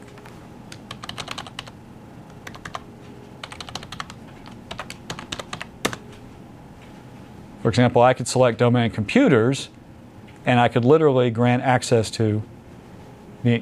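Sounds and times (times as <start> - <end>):
fingers typing on a computer keyboard: 0.7 - 1.8, 2.4 - 6.0
speech: 7.7 - 9.8, 10.4 - 12.5, 13.4 - 13.6.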